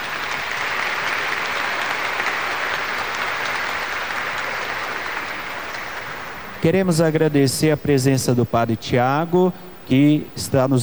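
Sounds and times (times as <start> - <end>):
audience applause: 0.0 - 7.3
speech: 6.6 - 10.8.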